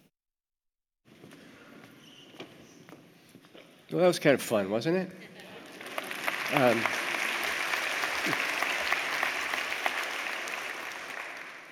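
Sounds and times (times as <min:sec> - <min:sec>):
speech: 0:03.9 - 0:05.3, 0:06.5 - 0:07.0
audience applauding: 0:05.5 - 0:11.7.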